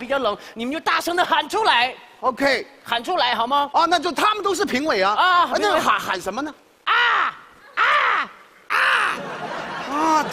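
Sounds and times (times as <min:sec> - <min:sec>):
speech: 0:00.0 - 0:06.6, 0:10.0 - 0:10.3
noise: 0:00.0 - 0:10.3
person imitating crow caws: 0:06.9 - 0:09.2
laughter: 0:08.7 - 0:10.3.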